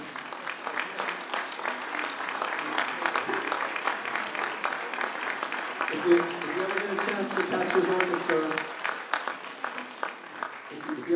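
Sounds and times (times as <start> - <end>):
audience applause: 0.0 - 11.1
speech: 6.1 - 6.4, 7.5 - 8.8.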